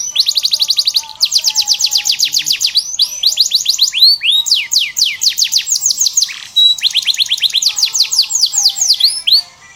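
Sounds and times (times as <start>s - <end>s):
canary: 0.0s - 9.7s.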